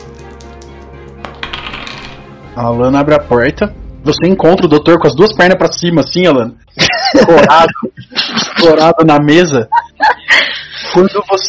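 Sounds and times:
die being rolled: 0:01.2 - 0:02.2
speech: 0:02.6 - 0:09.8, 0:10.9 - 0:11.4
laughter: 0:06.8 - 0:11.4.

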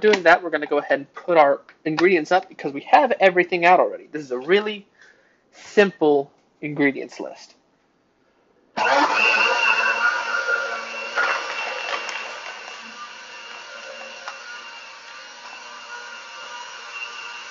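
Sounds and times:
speech: 0:00.0 - 0:04.9, 0:05.5 - 0:07.6
blender running: 0:08.8 - 0:17.4.

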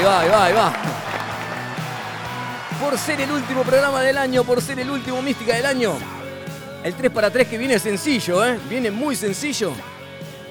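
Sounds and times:
speech: 0:00.0 - 0:01.1, 0:02.8 - 0:06.2, 0:06.8 - 0:10.0
audience applause: 0:00.0 - 0:05.0.

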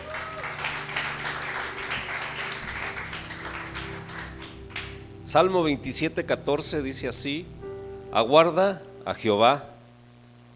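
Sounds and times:
audience applauding: 0:00.0 - 0:05.4
speech: 0:05.3 - 0:09.7.

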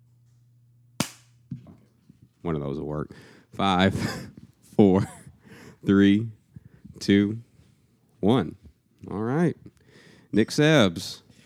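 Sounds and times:
single hand clap: 0:01.0 - 0:01.3
speech: 0:02.4 - 0:05.2, 0:05.8 - 0:06.4, 0:07.0 - 0:07.5, 0:08.2 - 0:09.7, 0:10.3 - 0:11.2
laughter: 0:03.8 - 0:05.4.

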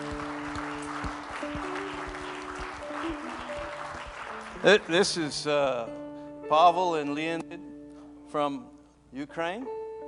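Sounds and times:
audience applause: 0:00.0 - 0:05.5
speech: 0:04.6 - 0:07.7, 0:08.3 - 0:09.8.

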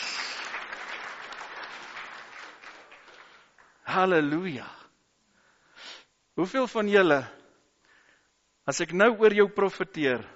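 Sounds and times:
audience applause: 0:00.0 - 0:03.8
speech: 0:03.9 - 0:04.8, 0:06.4 - 0:07.4, 0:08.7 - 0:10.3.

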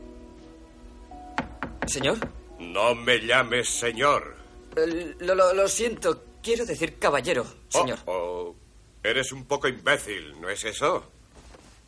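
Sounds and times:
knocking on a living-room door: 0:01.4 - 0:02.4
speech: 0:01.9 - 0:11.2.

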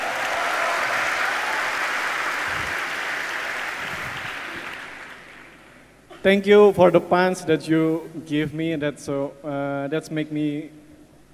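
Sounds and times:
audience applause: 0:00.0 - 0:05.7
speech: 0:06.2 - 0:10.8.

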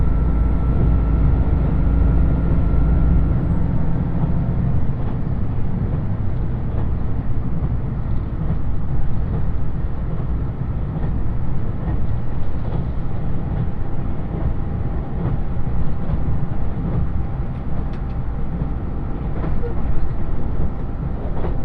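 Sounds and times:
deeper droning hum: 0:00.0 - 0:05.0
diesel limited express train on the Yosan Line running: 0:00.0 - 0:21.6.

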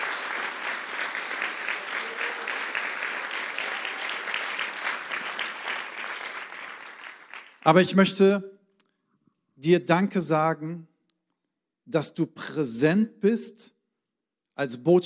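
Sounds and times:
large audience applause: 0:00.0 - 0:07.6
speech: 0:07.6 - 0:08.5, 0:09.6 - 0:10.9, 0:11.9 - 0:13.8, 0:14.6 - 0:15.0.

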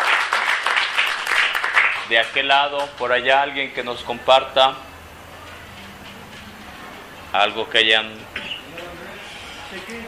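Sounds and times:
audience applause: 0:00.0 - 0:02.1
speech: 0:02.1 - 0:04.9, 0:07.3 - 0:08.4, 0:09.7 - 0:10.0.

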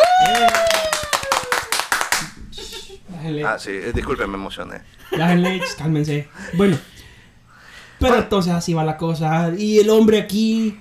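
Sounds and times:
applause: 0:00.0 - 0:02.3
speech: 0:03.4 - 0:06.9, 0:08.0 - 0:10.7.

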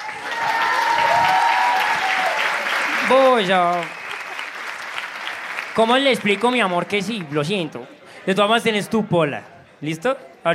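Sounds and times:
audience applause: 0:00.0 - 0:07.8
speech: 0:03.1 - 0:04.0, 0:05.8 - 0:10.5.

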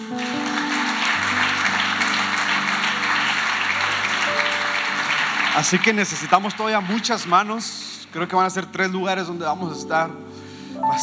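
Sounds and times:
audience applause: 0:00.0 - 0:08.2
speech: 0:05.6 - 0:11.0.

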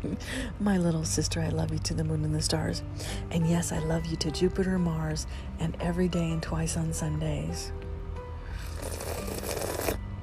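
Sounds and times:
speech: 0:00.0 - 0:07.8
low hum: 0:00.0 - 0:08.6
long wet slurp: 0:08.6 - 0:10.0.

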